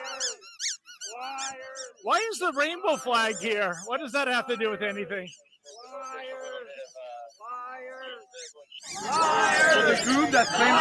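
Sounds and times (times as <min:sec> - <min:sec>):
squeezed rubber toy chicken squeaking: 0:00.0 - 0:02.0
speech: 0:01.2 - 0:06.0, 0:09.0 - 0:10.7.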